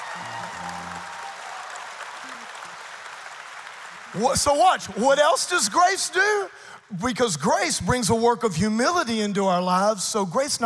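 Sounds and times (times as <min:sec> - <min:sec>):
audience clapping: 0:00.0 - 0:06.2
speech: 0:04.1 - 0:10.6.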